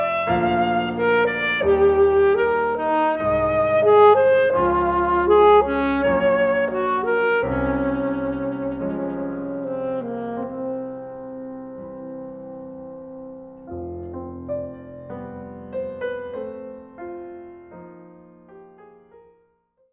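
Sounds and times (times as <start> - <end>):
saxophone sonata: 0.0 - 13.9.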